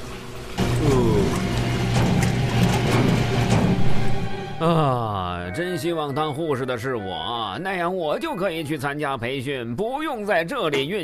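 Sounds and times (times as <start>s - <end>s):
washing machine running: 0.0s - 4.6s
speech: 4.6s - 11.0s.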